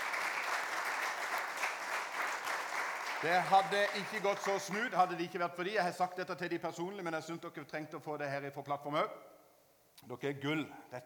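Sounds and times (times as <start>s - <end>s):
applause: 0.0s - 5.3s
speech: 3.2s - 9.3s, 10.0s - 11.0s.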